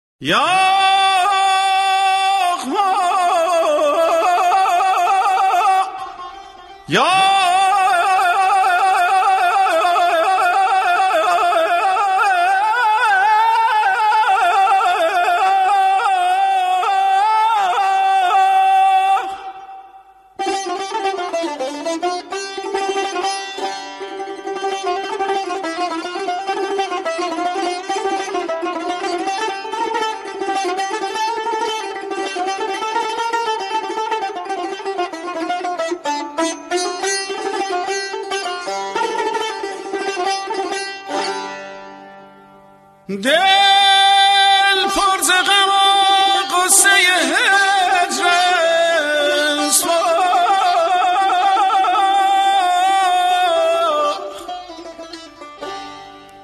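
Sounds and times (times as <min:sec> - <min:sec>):
person singing: 0:00.2 - 0:06.2, 0:06.8 - 0:21.9, 0:43.1 - 0:55.0
saz playing: 0:00.8 - 0:56.4.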